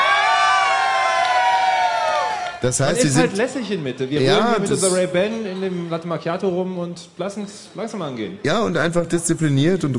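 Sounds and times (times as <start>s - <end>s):
outdoor crowd cheering and shouting: 0.0s - 3.3s
speech: 2.6s - 9.9s.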